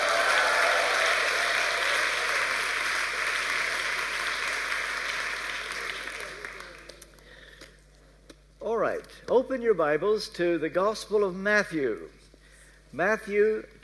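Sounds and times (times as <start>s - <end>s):
audience applause: 0.0s - 7.0s
speech: 9.0s - 12.2s, 12.9s - 13.8s.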